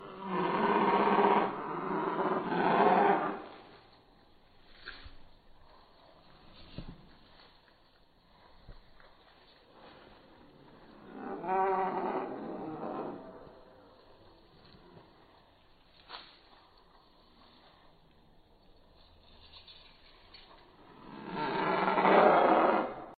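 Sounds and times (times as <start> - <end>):
great dinosaur sound: 0.0 - 3.7, 10.7 - 15.2, 20.8 - 23.1.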